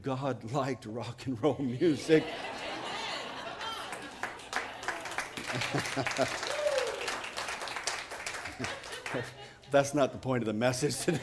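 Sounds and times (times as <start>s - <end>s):
speech: 0.0s - 2.7s, 5.5s - 6.6s, 8.6s - 11.2s
laughter: 1.5s - 7.1s, 8.3s - 10.2s, 10.8s - 11.2s
audience applause: 2.6s - 9.4s.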